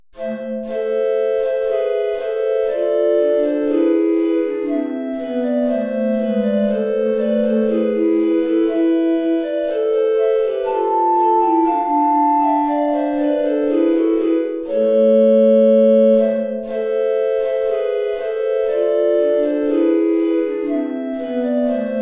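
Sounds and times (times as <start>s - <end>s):
three recorders playing: 0.2s - 22.0s.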